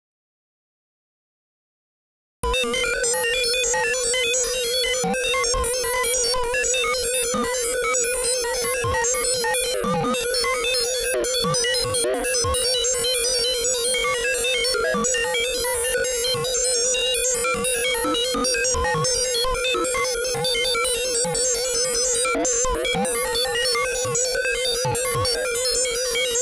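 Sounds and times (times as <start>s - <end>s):
sine wave tone: 2.4s - 26.4s.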